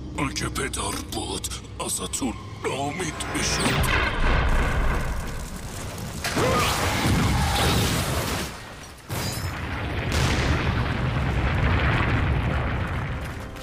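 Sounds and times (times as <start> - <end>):
speech: 0.2 - 4.4
volcanic eruption explosion: 3.8 - 8.6, 9.5 - 13.6.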